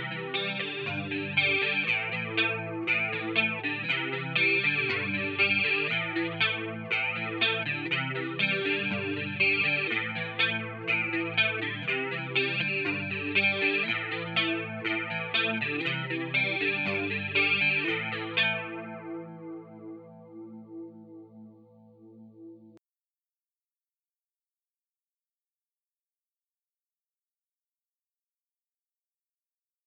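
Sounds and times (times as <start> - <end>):
guitar chords A minor C G with chorus effect: 0.0 - 22.8.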